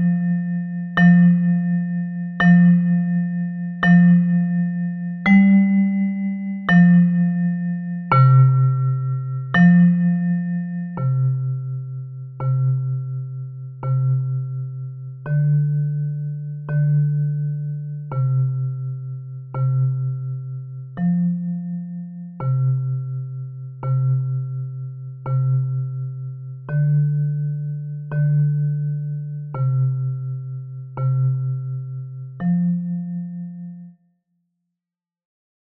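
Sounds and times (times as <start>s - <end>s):
bass metallophone: 0.0s - 34.0s.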